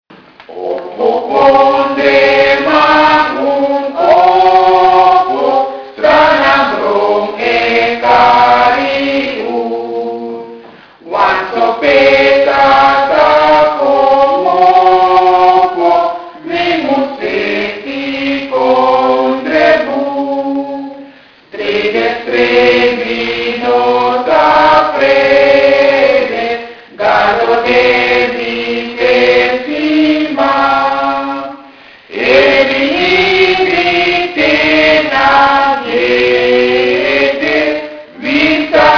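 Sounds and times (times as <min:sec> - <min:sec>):
anthem: 0:00.4 - 0:38.9.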